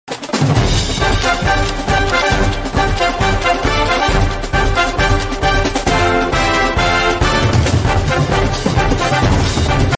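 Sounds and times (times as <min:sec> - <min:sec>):
music: 0:00.1 - 0:09.9.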